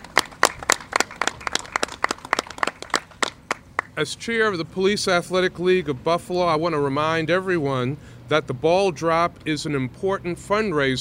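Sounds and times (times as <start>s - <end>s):
small audience applause: 0.0s - 3.9s
speech: 4.0s - 11.0s.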